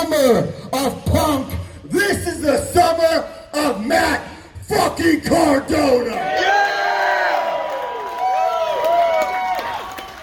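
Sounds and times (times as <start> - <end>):
speech: 0.2 - 6.5
crowd clapping: 6.6 - 10.2.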